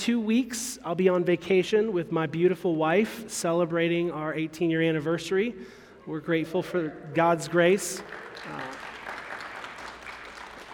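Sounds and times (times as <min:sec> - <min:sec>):
speech: 0:00.0 - 0:08.9
audience applause: 0:07.4 - 0:10.7.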